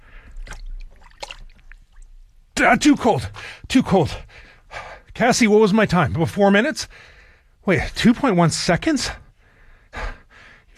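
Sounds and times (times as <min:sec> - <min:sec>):
arm lowered into tub of water, splashing and sloshing: 0:00.1 - 0:02.2
water trickling: 0:00.1 - 0:02.5
speech: 0:02.6 - 0:09.2.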